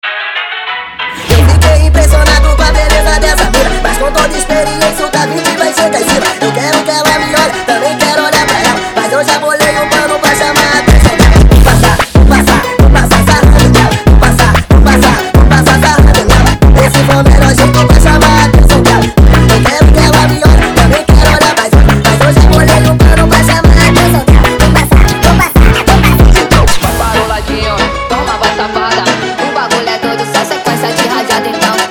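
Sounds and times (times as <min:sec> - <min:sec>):
bad funk music ending: 0:00.1 - 0:31.8.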